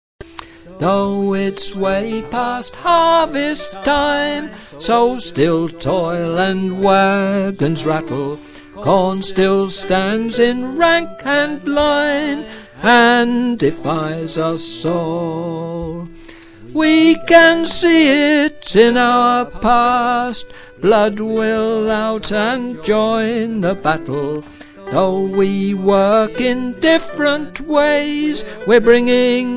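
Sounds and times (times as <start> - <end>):
soprano singers: 0.4 - 29.5.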